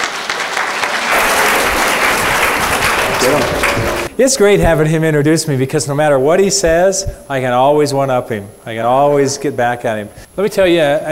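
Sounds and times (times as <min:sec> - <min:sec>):
audience applause: 0:00.0 - 0:04.1
speech: 0:03.2 - 0:03.6, 0:04.2 - 0:11.1.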